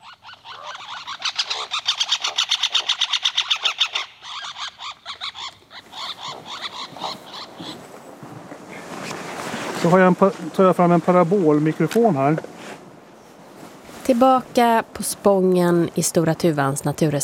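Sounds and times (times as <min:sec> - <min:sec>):
two birds' aggression calls on tree trunk: 0:00.0 - 0:07.9
speech: 0:09.8 - 0:12.5, 0:14.1 - 0:17.2.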